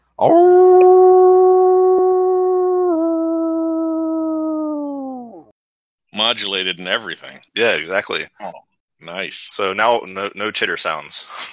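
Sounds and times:
speech: 0.2 - 0.9, 6.3 - 11.5
person imitating a howl: 0.2 - 5.5.

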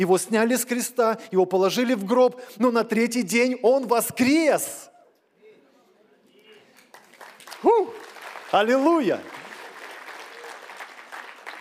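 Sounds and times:
speech: 0.0 - 4.9, 7.6 - 9.4
audience applause: 6.7 - 11.5.

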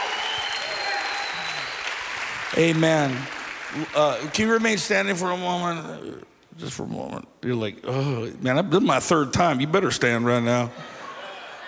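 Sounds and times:
church congregation applauding with hand claps: 0.0 - 5.2
speech: 2.5 - 11.0
laughter: 10.7 - 11.6.

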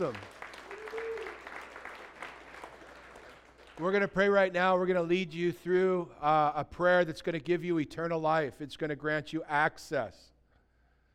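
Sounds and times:
speech: 0.0 - 0.3, 3.8 - 10.3
children clapping during a church service: 0.0 - 4.1.

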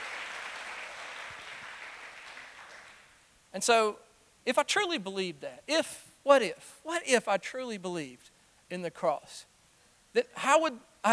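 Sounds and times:
audience applause: 0.0 - 3.1
speech: 3.6 - 9.5, 10.1 - 11.1.

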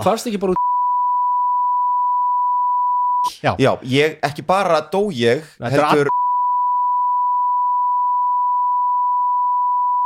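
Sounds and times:
speech: 0.0 - 0.7, 3.4 - 6.2
censor bleep tone: 0.6 - 3.3, 6.1 - 10.0.

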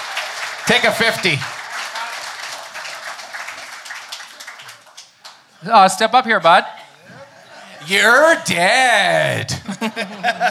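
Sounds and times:
round of applause: 0.0 - 5.4, 7.8 - 9.6
speech: 0.7 - 1.6, 5.6 - 6.8, 7.8 - 10.4
laughter: 7.0 - 10.4.

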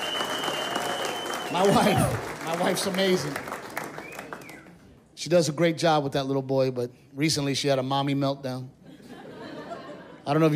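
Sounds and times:
audience applause: 0.0 - 4.7
speech: 1.5 - 3.5, 5.2 - 8.8, 10.3 - 10.5
laughter: 8.8 - 10.5.

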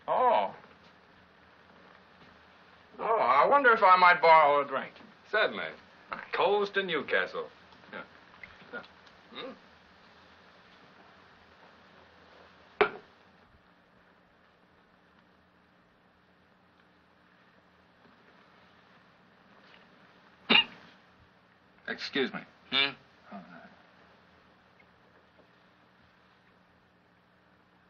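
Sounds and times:
speech: 3.5 - 5.8, 6.4 - 7.6, 8.7 - 9.6, 22.0 - 23.5
man hiccuping: 8.7 - 9.6, 20.5 - 20.8, 22.7 - 23.7.

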